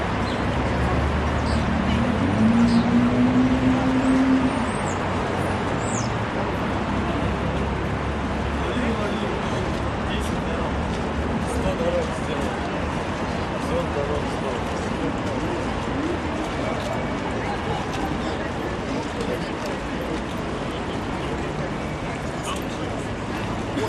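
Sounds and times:
heavy crowd with luggage at the main entrance of Kazanskiy train terminal in Moscow: 0:00.0 - 0:23.8.

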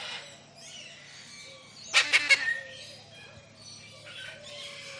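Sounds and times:
lilac-crowned amazon squawking in a large tropical aviary: 0:01.9 - 0:02.6.

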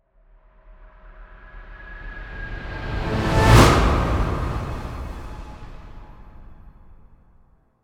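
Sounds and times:
orchestral swell: 0:01.6 - 0:07.0
impact hit: 0:02.1 - 0:07.2.

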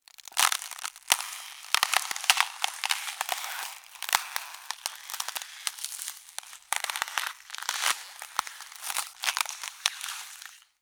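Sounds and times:
ice cracking in nature: 0:00.0 - 0:10.8.

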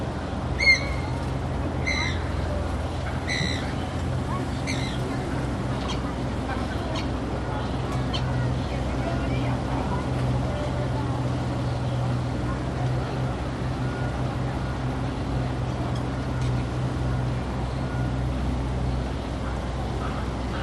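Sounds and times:
distant city hum: 0:00.0 - 0:20.6
wind in trees: 0:00.0 - 0:20.6
birds in botanic gardens park: 0:01.8 - 0:08.4.

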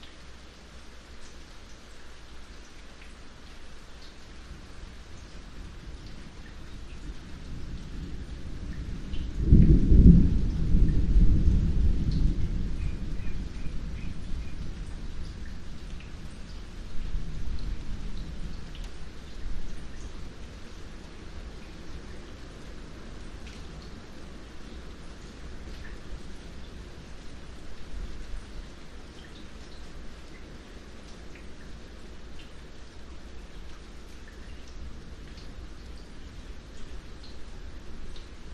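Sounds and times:
very light rain drips: 0:00.0 - 0:38.5
distant thunder rumbles: 0:07.0 - 0:19.8.

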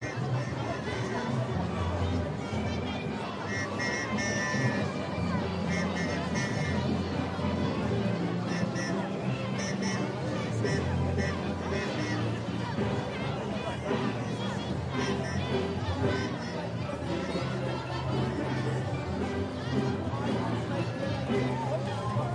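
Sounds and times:
protest crowd ambience: 0:00.0 - 0:22.3
protest band playing: 0:02.2 - 0:22.2.

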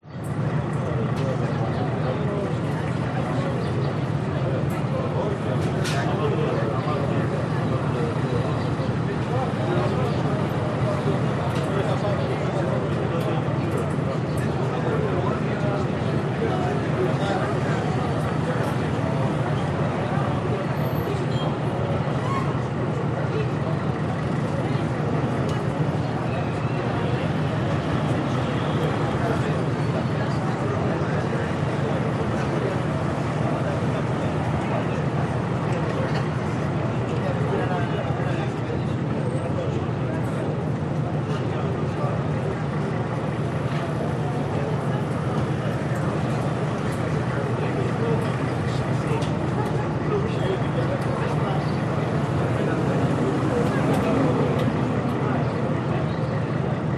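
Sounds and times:
harbour ambience in Greece: 0:00.0 - 0:56.9.

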